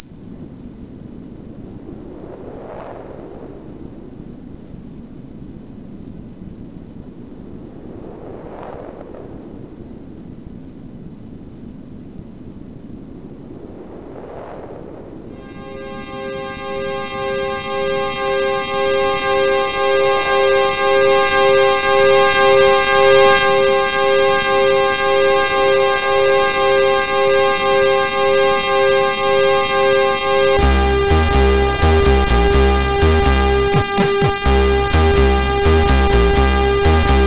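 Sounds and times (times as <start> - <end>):
techno music: 15.4 - 37.2.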